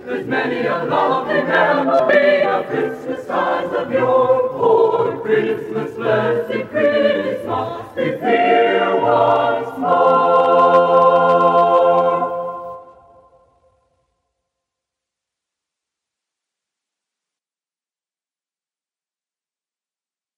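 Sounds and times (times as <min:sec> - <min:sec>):
a cappella chorale singing: 0:00.0 - 0:13.5.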